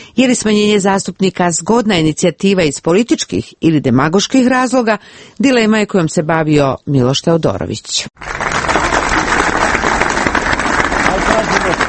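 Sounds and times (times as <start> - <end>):
speech: 0.2 - 8.6
supporters in central Belgrade applauding: 8.2 - 11.8.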